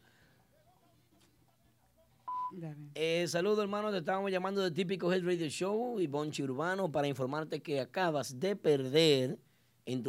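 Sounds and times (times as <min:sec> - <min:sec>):
answering machine beep: 0:02.3 - 0:02.6
speech: 0:02.5 - 0:10.0.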